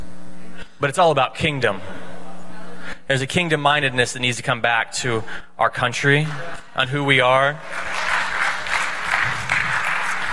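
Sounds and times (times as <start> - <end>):
speech: 0.8 - 2.0, 3.1 - 8.0
audience clapping: 6.0 - 10.3.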